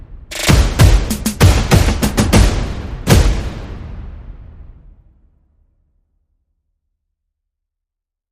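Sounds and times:
percussion: 0.3 - 3.8
sound effects: 0.3 - 4.7.

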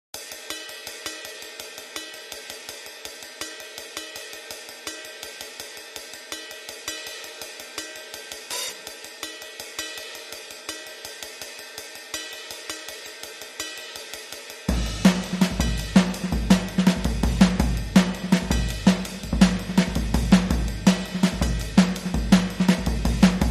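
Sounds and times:
drums: 0.1 - 23.5.

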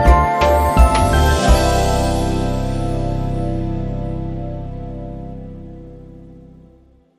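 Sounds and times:
long musical sting: 0.2 - 6.3.

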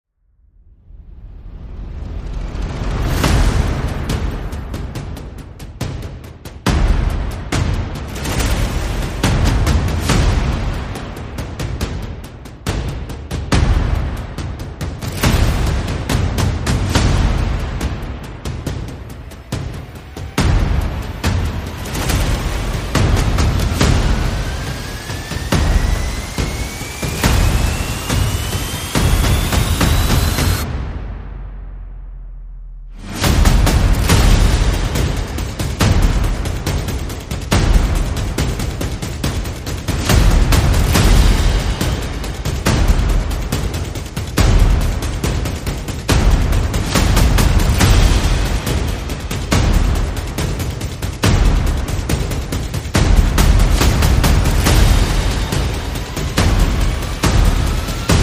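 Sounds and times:
percussion: 0.9 - 58.2.

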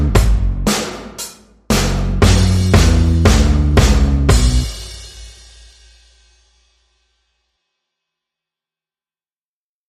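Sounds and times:
bass: 0.0 - 6.2
drums: 0.0 - 7.2.

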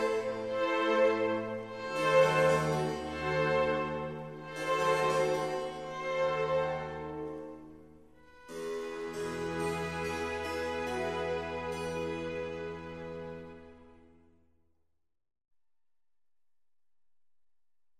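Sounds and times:
violin concerto in C major: 0.0 - 14.0.

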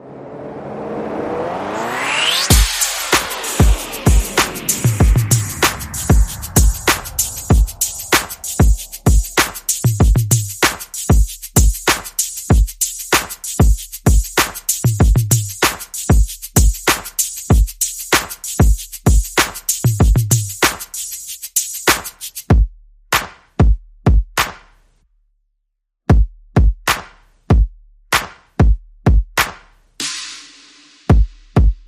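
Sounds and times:
sound effects: 0.0 - 9.8
percussion: 1.8 - 24.9, 26.1 - 31.8.

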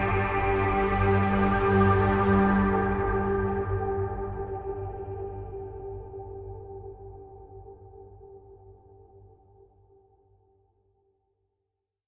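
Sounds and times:
drone: 0.0 - 7.0.

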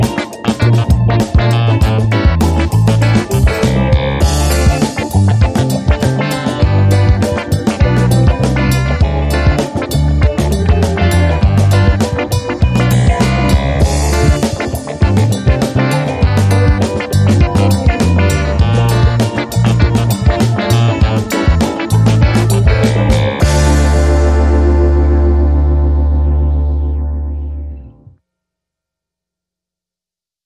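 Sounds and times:
funky clavinet keyboard: 0.0 - 28.1.

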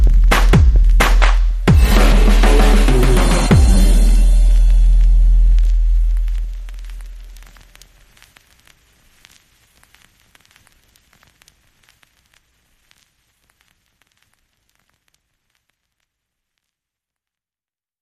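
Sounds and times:
underscore music: 0.0 - 7.5.

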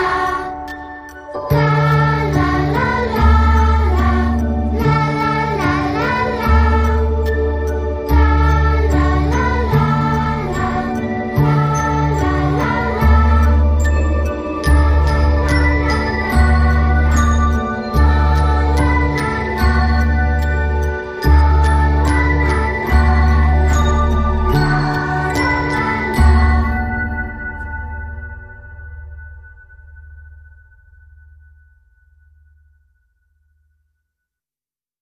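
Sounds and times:
choir singing: 0.0 - 27.4.

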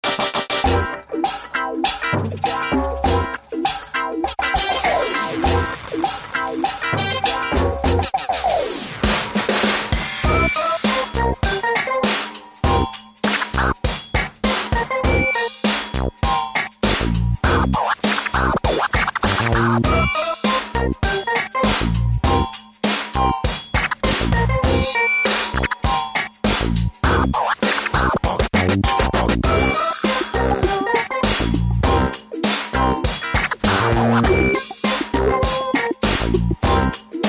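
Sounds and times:
zombie techno funk music: 0.0 - 37.2.

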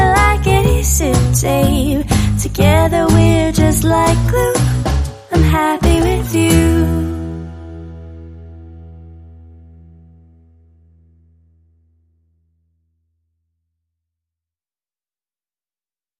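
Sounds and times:
drums: 0.0 - 7.6
vocals: 0.0 - 7.7
bass: 0.0 - 14.0.

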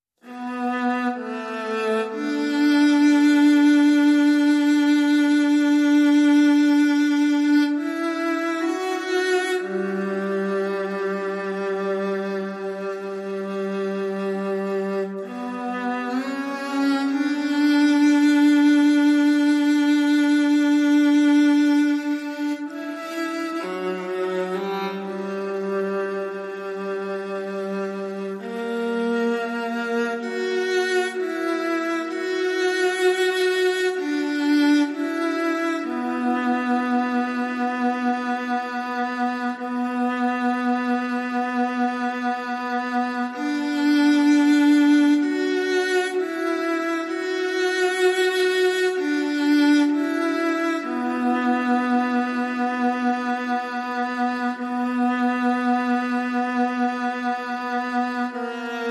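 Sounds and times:
strings: 0.2 - 58.8.

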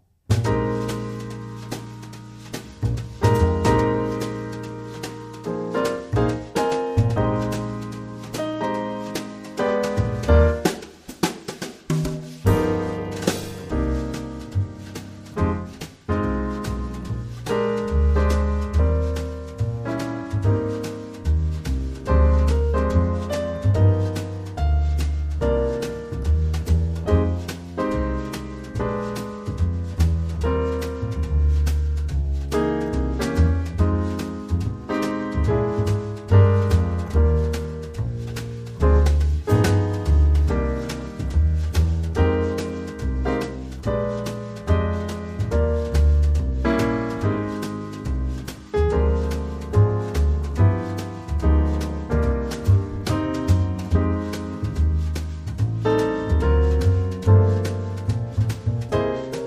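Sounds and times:
jazz music: 0.3 - 59.4.

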